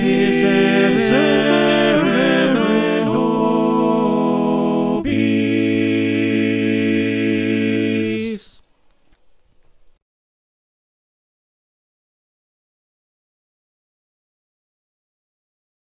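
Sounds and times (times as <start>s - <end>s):
SATB choir singing: 0.0s - 8.6s.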